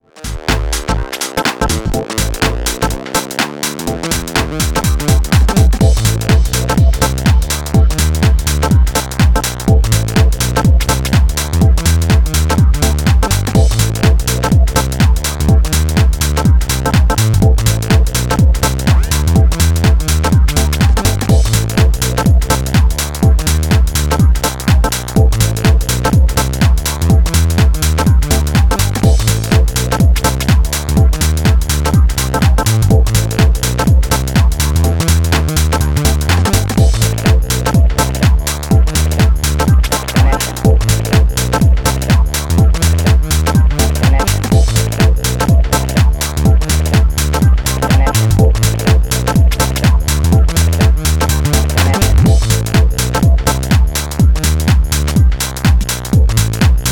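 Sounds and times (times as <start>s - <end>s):
house nu disco Balearic music: 0.0s - 56.9s.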